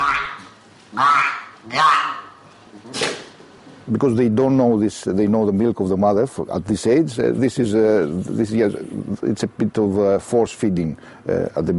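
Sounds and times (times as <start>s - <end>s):
seal pup barking: 0.0s - 2.4s
speech: 0.9s - 1.9s, 3.9s - 11.7s.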